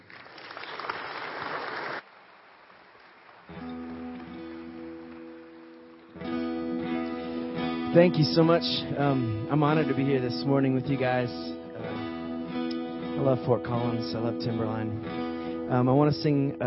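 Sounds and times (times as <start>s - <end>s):
crowd clapping loudly: 0.0s - 7.5s
speech: 7.9s - 11.9s, 13.2s - 16.6s.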